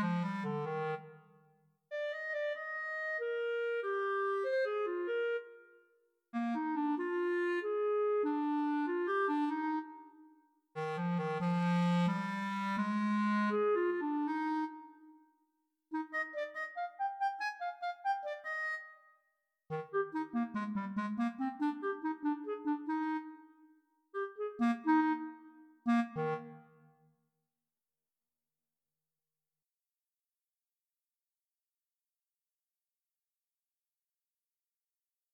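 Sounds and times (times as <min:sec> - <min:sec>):
solo clarinet: 0:00.0 - 0:27.0.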